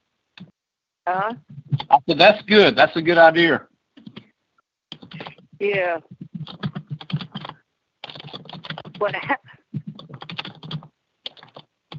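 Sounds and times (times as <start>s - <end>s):
speech: 0.4s - 3.7s, 5.6s - 6.2s, 9.0s - 9.5s
typing a message on a computer keyboard: 4.0s - 4.3s, 4.9s - 11.9s.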